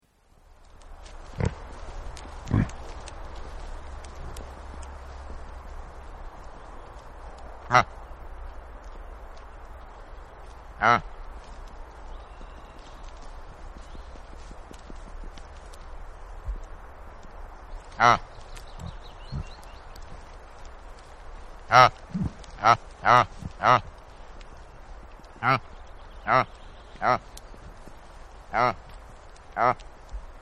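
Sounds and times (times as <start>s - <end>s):
reindeer grunting: 1.2s - 4.8s, 21.7s - 24.1s, 25.4s - 27.4s, 28.5s - 28.9s, 29.5s - 29.8s.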